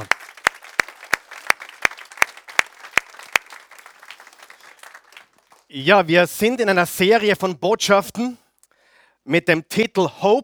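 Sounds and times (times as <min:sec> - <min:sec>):
audience applause: 0:00.0 - 0:05.8
speech: 0:05.7 - 0:08.4, 0:09.3 - 0:10.4.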